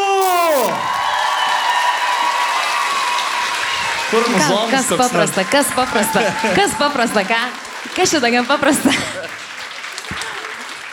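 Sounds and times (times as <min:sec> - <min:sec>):
short falling tone: 0:00.0 - 0:00.7
audience applause and cheering for a performer: 0:00.6 - 0:04.8, 0:05.4 - 0:08.2, 0:09.2 - 0:10.9
speech: 0:04.1 - 0:09.4.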